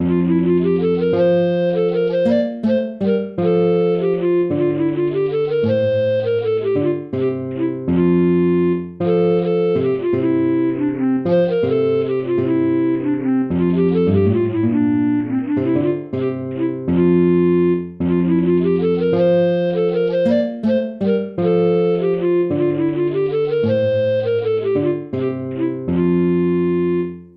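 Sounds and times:
lute playing: 0.0s - 27.3s.

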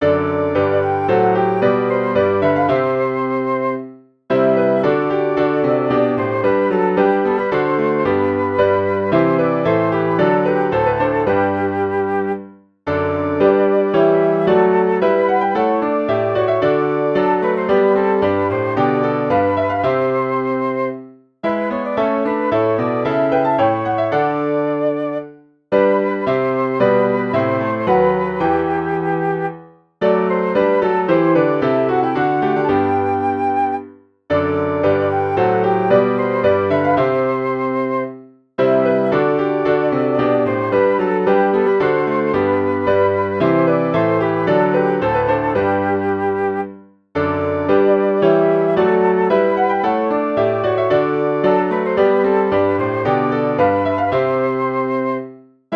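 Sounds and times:
flute and piano chorale: 0.0s - 55.7s.

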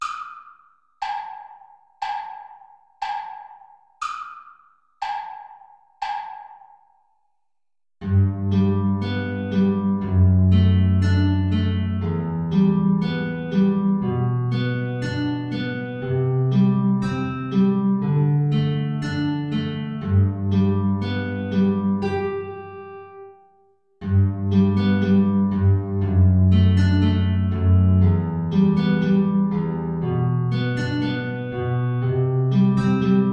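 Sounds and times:
folk tune play-along backing track: 8.0s - 23.3s, 24.0s - 33.3s.

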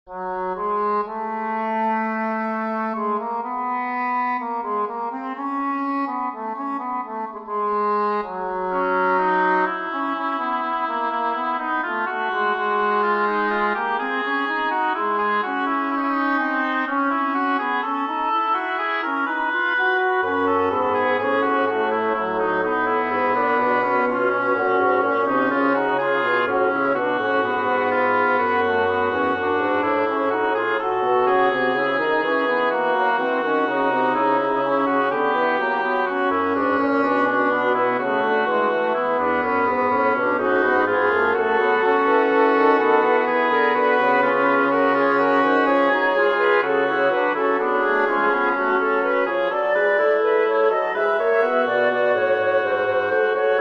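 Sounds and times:
woodwind quartet playing a minor-key fugue: 0.1s - 53.5s.

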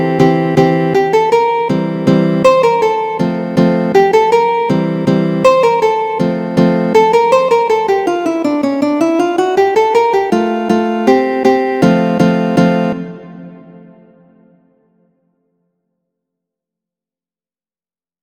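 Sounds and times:
andante guitar piece: 0.0s - 14.4s.

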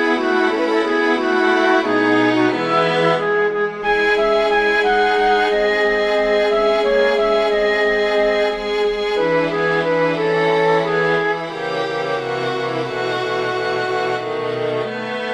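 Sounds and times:
flute and strings piece: 0.0s - 15.3s.

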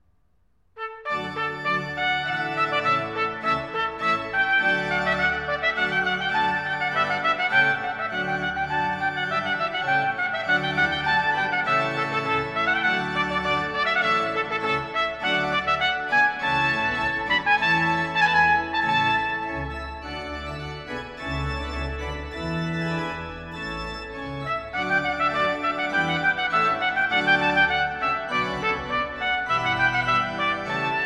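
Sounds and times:
trumpet piece: 0.8s - 31.0s.

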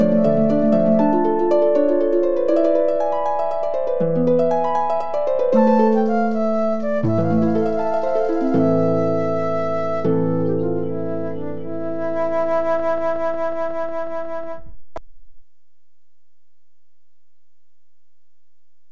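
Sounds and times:
harp: 0.0s - 14.6s
oboe: 5.4s - 14.7s
flute: 5.5s - 14.8s.

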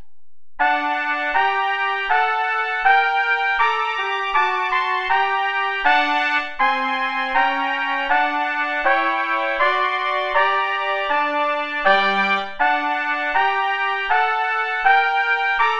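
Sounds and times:
play-along backing music without trumpet: 0.6s - 15.7s.

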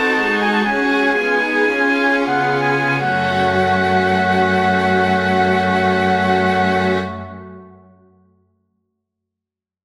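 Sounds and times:
flute playing a chorale: 0.0s - 7.8s
strings playing a chorale: 0.0s - 8.0s.

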